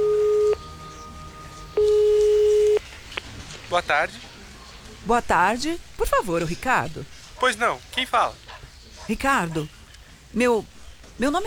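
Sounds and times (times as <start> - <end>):
telephone ringback tone: 0.0 - 0.8, 1.8 - 2.8
speech: 3.7 - 4.4, 5.1 - 8.4, 9.1 - 11.4.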